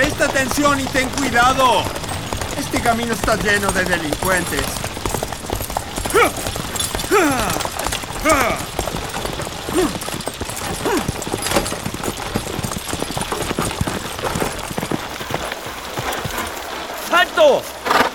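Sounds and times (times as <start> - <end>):
horse approaching: 0.0 - 18.1
speech: 0.4 - 4.9, 6.1 - 6.6, 7.2 - 8.7.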